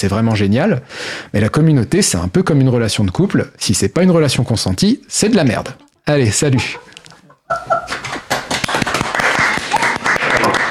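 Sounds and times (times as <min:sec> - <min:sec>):
speech: 0:00.0 - 0:06.9
laughter: 0:06.2 - 0:10.6
audience applause: 0:07.9 - 0:10.6.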